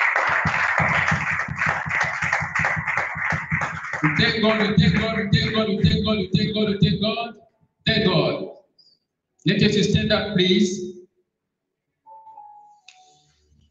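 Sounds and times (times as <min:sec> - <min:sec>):
audience applause: 0:00.0 - 0:05.4
speech: 0:04.0 - 0:08.4, 0:09.4 - 0:10.8.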